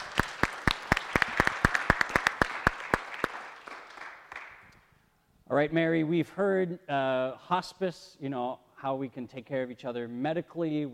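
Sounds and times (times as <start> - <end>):
audience applause: 0.0 - 4.6
speech: 5.5 - 10.9.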